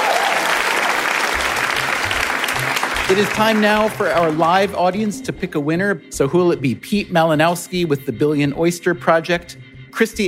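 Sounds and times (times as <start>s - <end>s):
live audience applause for the guests: 0.0s - 5.1s
speech: 3.1s - 10.2s.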